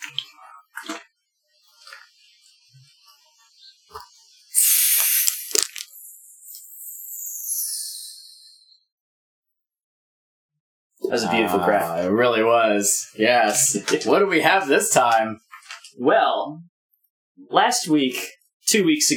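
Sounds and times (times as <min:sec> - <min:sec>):
Faygo soda hissing and fizzing: 0:04.5 - 0:07.7
Faygo soda can handling clicks: 0:04.8 - 0:05.9
speech: 0:11.1 - 0:16.7, 0:17.4 - 0:19.1.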